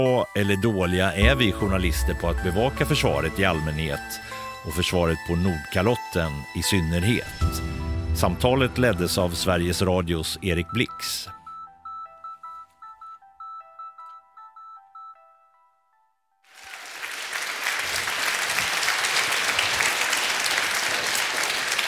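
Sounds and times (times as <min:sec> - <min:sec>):
speech: 0:00.0 - 0:11.4
audience applause: 0:16.5 - 0:21.8.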